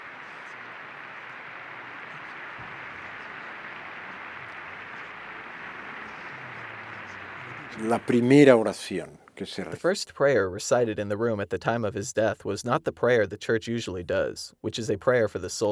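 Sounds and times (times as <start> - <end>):
endless applause from a crowd: 0.0 - 9.6
speech: 7.8 - 15.7.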